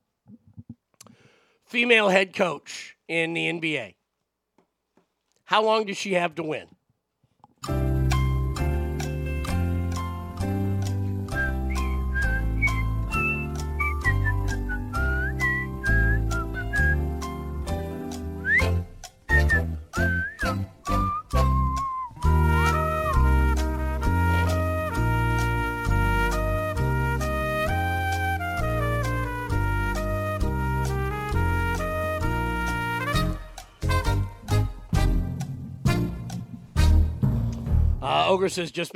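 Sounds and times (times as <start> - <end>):
speech: 1.7 - 4.0, 5.5 - 6.8, 38.4 - 38.9
game show countdown thinking music: 7.6 - 38.4.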